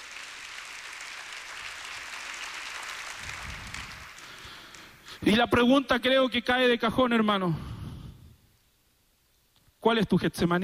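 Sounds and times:
crowd applauding: 0.0s - 5.1s
speech: 5.2s - 7.7s, 9.8s - 10.6s.

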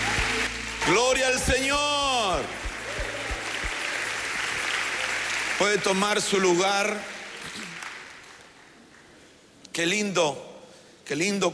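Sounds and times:
audience clapping: 0.0s - 9.1s
speech: 0.9s - 2.6s, 5.6s - 7.1s, 9.8s - 10.5s, 11.1s - 11.5s.

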